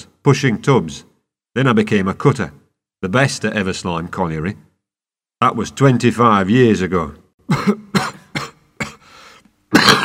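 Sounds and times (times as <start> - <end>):
speech: 0.2 - 4.7, 5.4 - 7.9
miner coughing violently into a dirty handkerchief: 7.4 - 10.0.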